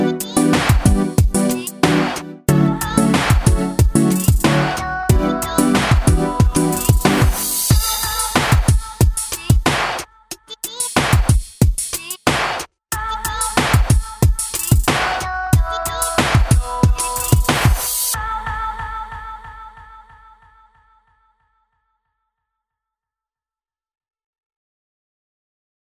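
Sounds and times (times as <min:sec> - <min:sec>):
hip hop music: 0:00.0 - 0:20.2.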